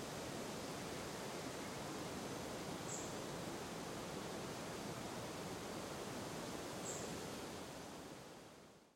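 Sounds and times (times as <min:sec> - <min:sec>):
wind in a forest: 0:00.0 - 0:08.9.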